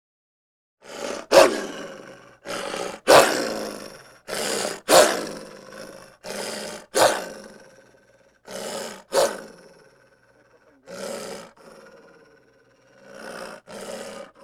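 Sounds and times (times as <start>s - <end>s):
dog growling and snarling: 0.8s - 14.4s.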